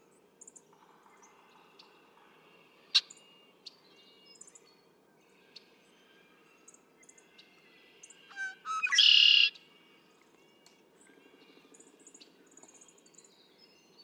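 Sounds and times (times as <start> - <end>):
other birds chirping: 8.3 - 9.5
red-winged blackbird buzzy trill: 8.3 - 9.5.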